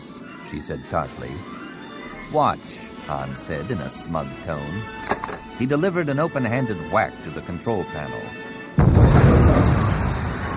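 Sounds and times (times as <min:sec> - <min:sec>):
speech: 0:00.5 - 0:01.6, 0:02.3 - 0:08.4
concussion missile exploding: 0:08.8 - 0:10.5.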